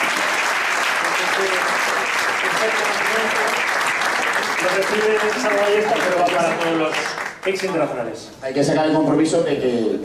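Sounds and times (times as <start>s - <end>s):
audience applause: 0.0s - 8.0s
speech: 2.5s - 3.8s, 4.6s - 10.0s.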